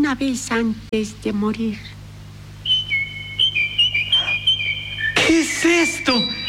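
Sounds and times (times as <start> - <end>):
faint low hum: 0.0 - 6.4
speech: 0.1 - 2.0, 5.6 - 6.4
whistled birdsong standing in for a nightingale singing from a window: 2.6 - 6.4.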